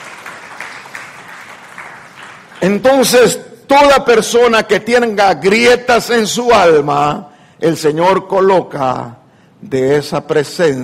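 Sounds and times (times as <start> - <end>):
church congregation applauding during a service: 0.0 - 3.2
speech: 2.6 - 10.8.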